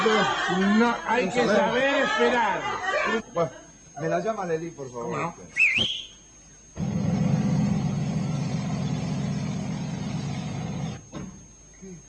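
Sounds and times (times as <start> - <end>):
laughter: 0.0 - 3.8
speech: 0.0 - 6.0
airplane engine warming up: 6.8 - 11.2.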